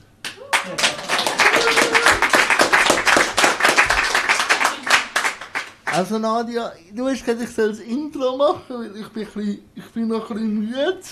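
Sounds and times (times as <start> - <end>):
live audience applauding: 0.2 - 6.1
speech: 6.0 - 11.1.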